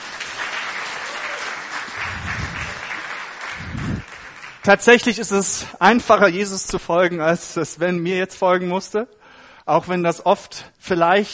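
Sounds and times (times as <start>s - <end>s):
audience applause: 0.0s - 4.6s
speech: 4.7s - 11.3s.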